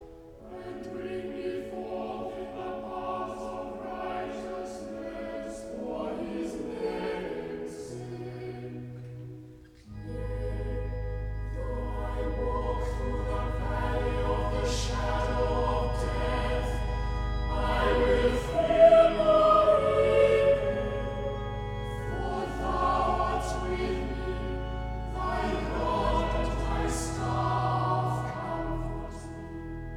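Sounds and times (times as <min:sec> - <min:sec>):
choir singing: 0:00.0 - 0:29.9.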